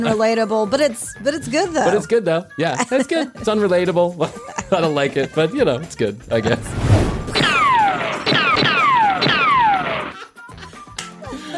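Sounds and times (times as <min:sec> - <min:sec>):
speech: 0:00.0 - 0:07.2
gunshot: 0:07.1 - 0:09.8.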